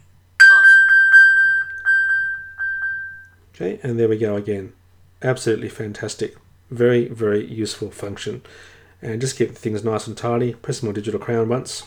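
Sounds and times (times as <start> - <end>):
phone ping alert set off from a smartwatch ping icon: 0.4 - 3.3
speech: 3.6 - 11.8.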